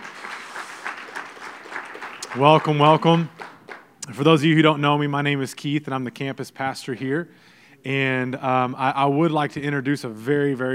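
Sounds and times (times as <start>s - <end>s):
audience applause: 0.0s - 3.9s
speech: 2.4s - 3.4s, 4.1s - 10.7s.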